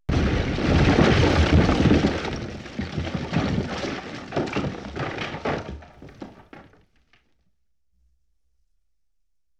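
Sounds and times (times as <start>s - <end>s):
explosion: 0.1s - 4.6s.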